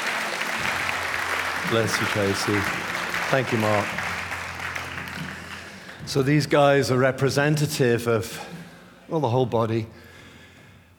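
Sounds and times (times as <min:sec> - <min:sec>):
audience applause: 0:00.0 - 0:07.0
speech: 0:01.7 - 0:04.0, 0:06.1 - 0:10.0.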